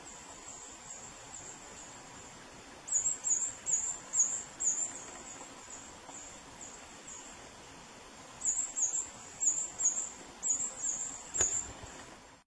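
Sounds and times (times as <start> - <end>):
purple hummingbird song: 0.0 - 7.6, 8.3 - 11.8.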